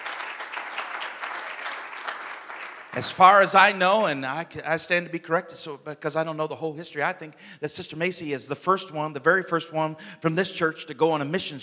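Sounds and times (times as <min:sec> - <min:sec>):
audience hand clapping: 0:00.0 - 0:03.7
speech: 0:03.0 - 0:11.6.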